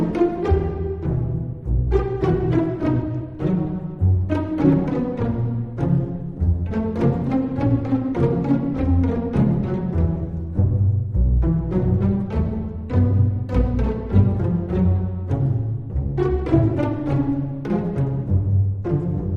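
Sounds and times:
pizzicato strings: 0:00.0 - 0:19.3.

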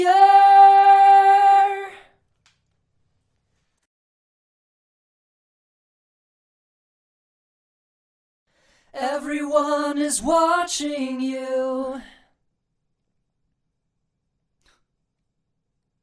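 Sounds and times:
a cappella singing: 0:00.0 - 0:02.1, 0:09.0 - 0:12.2.

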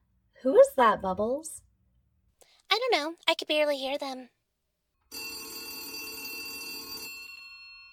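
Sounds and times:
speech: 0:00.4 - 0:01.6, 0:02.9 - 0:04.4
old-style landline telephone bell ringing: 0:05.1 - 0:07.8.

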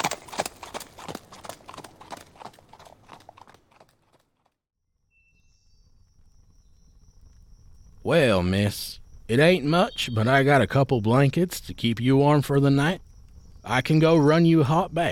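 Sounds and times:
trotting horse hooves clip-clopping, pulling a carriage: 0:00.0 - 0:04.6
speech: 0:08.0 - 0:13.0, 0:13.7 - 0:15.1.

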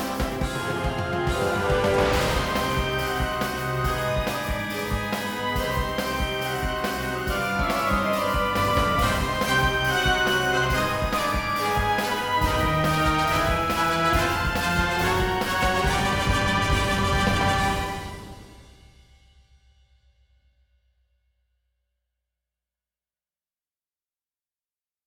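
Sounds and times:
bagpipe: 0:00.0 - 0:18.6.

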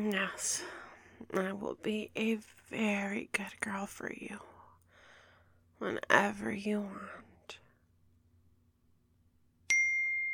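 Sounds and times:
speech: 0:00.0 - 0:04.5, 0:05.8 - 0:07.6
mobile phone chime: 0:09.7 - 0:10.3.

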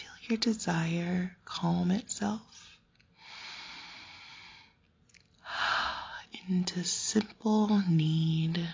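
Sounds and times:
speech: 0:00.3 - 0:02.5, 0:06.5 - 0:08.7
slow breathing in and out: 0:03.2 - 0:06.2.

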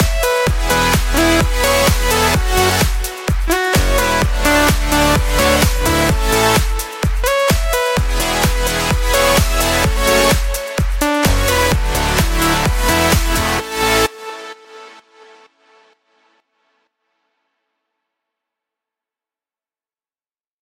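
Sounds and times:
happy cute melodic EDM song: 0:00.0 - 0:16.4.

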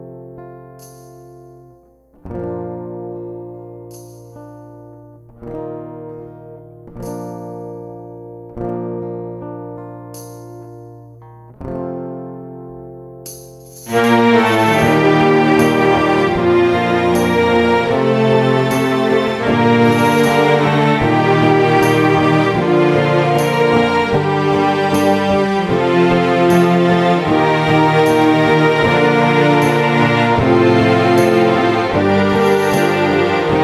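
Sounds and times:
orchestral backing music: 0:13.9 - 0:33.6.

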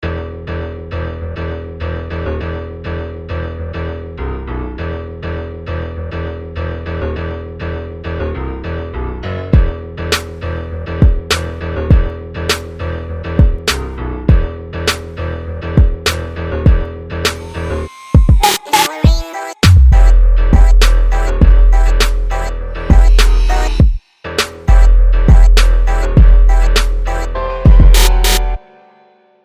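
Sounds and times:
twerk remix music: 0:09.6 - 0:28.6.

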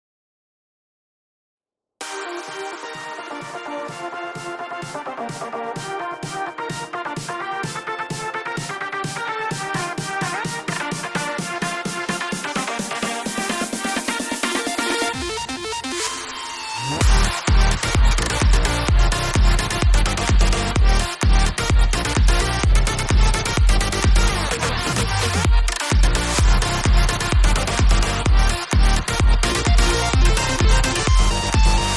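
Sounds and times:
future bass song: 0:02.0 - 0:31.9.

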